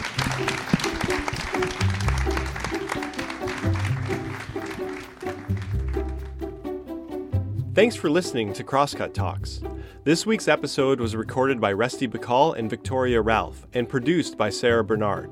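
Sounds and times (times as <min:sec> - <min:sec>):
audience clapping: 0:00.0 - 0:06.8
bassy musical line: 0:00.0 - 0:15.3
speech: 0:07.8 - 0:15.3.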